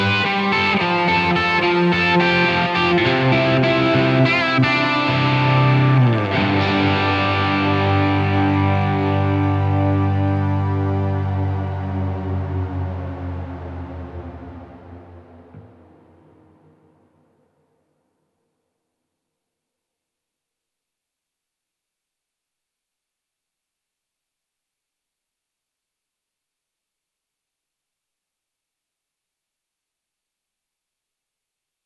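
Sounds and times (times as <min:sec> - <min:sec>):
atmospheric crunch: 0:00.0 - 0:17.4.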